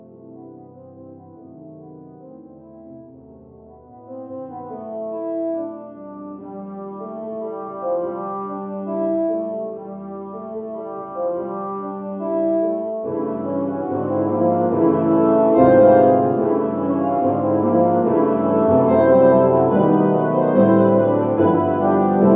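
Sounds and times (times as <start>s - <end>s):
walking tune on low brass: 4.1s - 22.3s.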